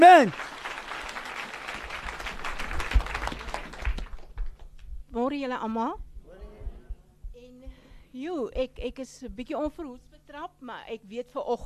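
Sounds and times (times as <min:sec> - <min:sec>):
speech: 0:00.0 - 0:00.6, 0:05.2 - 0:06.0, 0:07.4 - 0:11.6
audience clapping: 0:00.0 - 0:04.9.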